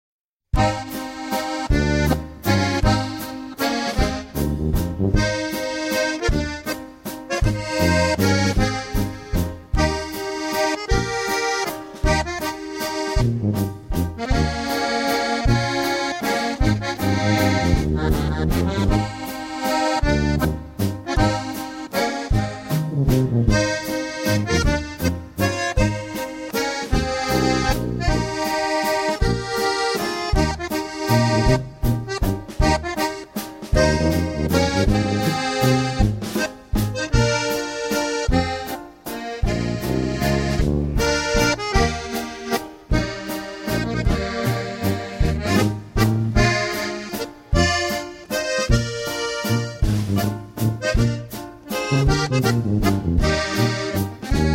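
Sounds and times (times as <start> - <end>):
waltz music: 0.6 - 54.5.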